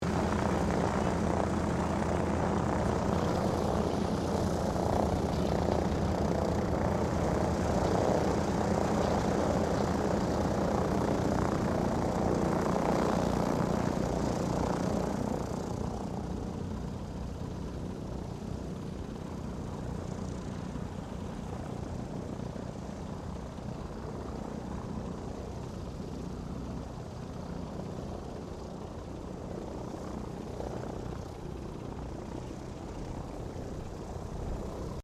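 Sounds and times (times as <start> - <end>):
distant Douglas DC3 aircraft taxiing: 0.0 - 35.0.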